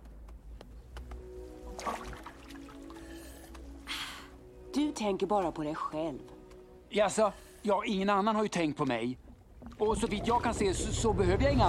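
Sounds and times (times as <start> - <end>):
water splashing and pouring: 1.6 - 3.4, 8.8 - 11.6
speech: 4.8 - 11.6.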